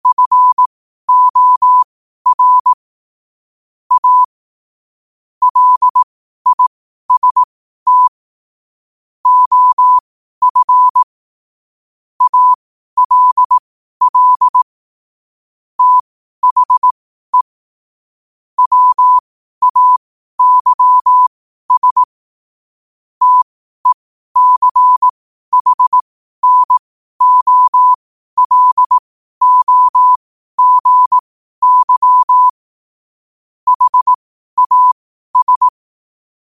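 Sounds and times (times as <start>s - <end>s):
morse code at 5 wpm: 0.0s - 2.8s, 3.9s - 4.3s, 5.4s - 8.1s, 9.2s - 11.1s, 12.2s - 14.7s, 15.8s - 17.5s, 18.6s - 22.1s, 23.2s - 32.6s, 33.7s - 35.8s.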